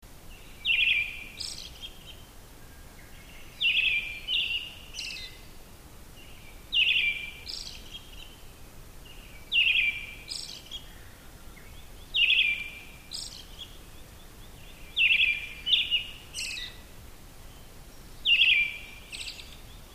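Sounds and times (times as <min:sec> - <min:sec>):
faint background hiss: 0:00.0 - 0:19.9
Brown-headed thrush whistled song: 0:00.6 - 0:02.3, 0:03.0 - 0:05.5, 0:06.2 - 0:08.4, 0:09.1 - 0:10.9, 0:11.6 - 0:16.8, 0:17.5 - 0:19.9.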